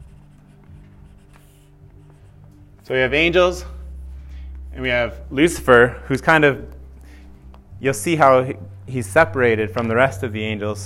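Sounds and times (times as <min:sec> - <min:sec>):
pen strokes writing a name by hand: 0:00.0 - 0:02.7
low hum: 0:00.0 - 0:10.8
speech: 0:02.8 - 0:03.8, 0:04.8 - 0:06.8, 0:07.8 - 0:10.8.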